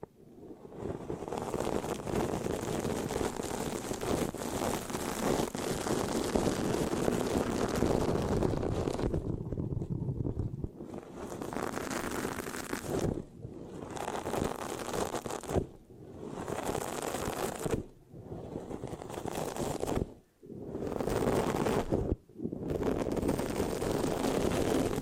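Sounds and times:
scratching on a microphone: 0.7 - 25.0.

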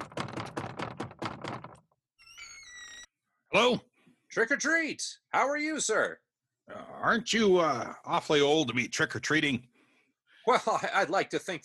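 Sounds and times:
knocking on a front door: 0.0 - 1.9
speech: 3.5 - 9.7, 10.4 - 11.6.

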